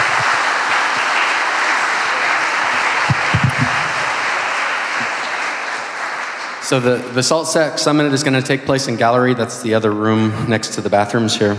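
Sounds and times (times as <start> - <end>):
audience applauding after keynote: 0.0 - 8.1
speech: 6.7 - 11.5.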